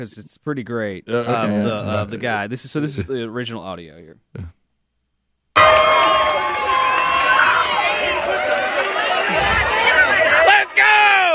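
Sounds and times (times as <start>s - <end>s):
speech: 0.0s - 4.6s
crowd cheering: 5.6s - 11.3s.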